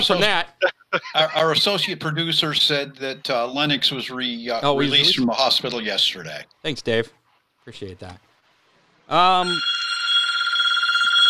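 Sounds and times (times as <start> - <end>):
speech: 0.0 - 8.3, 9.1 - 9.8
telephone ringing with electronic trill: 9.2 - 11.2.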